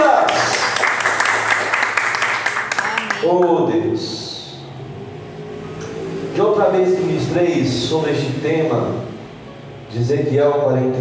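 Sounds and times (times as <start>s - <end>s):
audience applause: 0.0s - 3.5s
indistinct voices: 2.7s - 10.9s
speech: 6.7s - 9.1s, 10.0s - 10.9s.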